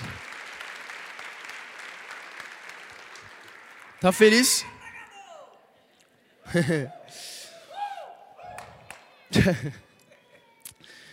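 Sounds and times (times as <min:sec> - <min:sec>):
audience applause: 0:00.0 - 0:05.1, 0:08.5 - 0:09.8
speech: 0:04.0 - 0:04.8, 0:06.5 - 0:07.4, 0:09.3 - 0:09.9
laughter: 0:05.8 - 0:07.2, 0:09.2 - 0:10.6.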